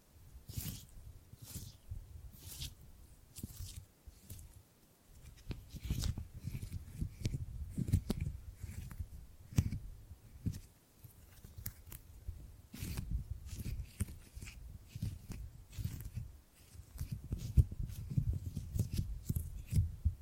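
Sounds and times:
gripping and grabbing sounds: 0:00.0 - 0:20.2.

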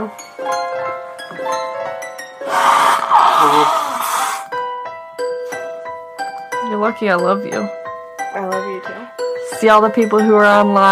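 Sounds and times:
speech: 0:00.0 - 0:01.7, 0:03.4 - 0:03.8, 0:06.8 - 0:07.8, 0:08.4 - 0:10.8
nose blowing: 0:02.4 - 0:04.5.

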